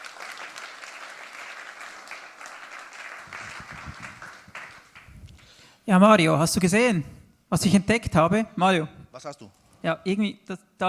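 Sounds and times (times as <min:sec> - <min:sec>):
audience applause: 0:00.0 - 0:05.1
speech: 0:05.9 - 0:10.8.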